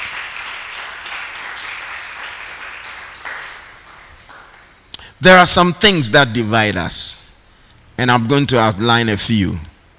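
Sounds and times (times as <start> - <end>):
audience clapping: 0.0 - 4.8
speech: 5.2 - 7.2, 8.0 - 9.7.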